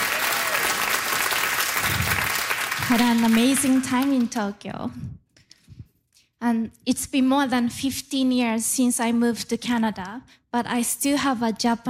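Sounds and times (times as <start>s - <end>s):
audience applauding a speaker: 0.0s - 4.2s
speech: 2.9s - 5.2s, 6.4s - 11.8s.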